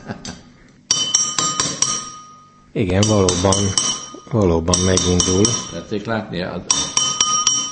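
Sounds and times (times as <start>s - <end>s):
glasses of fizzy drink tapped on the side to release carbon dioxide: 0.9s - 6.0s, 6.7s - 7.7s
speech: 2.8s - 6.8s.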